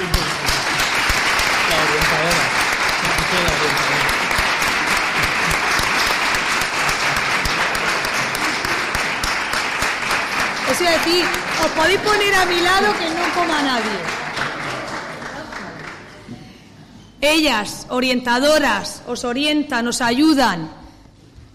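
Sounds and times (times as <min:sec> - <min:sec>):
audience applause: 0:00.0 - 0:16.2
speech: 0:11.0 - 0:14.2, 0:17.2 - 0:20.8.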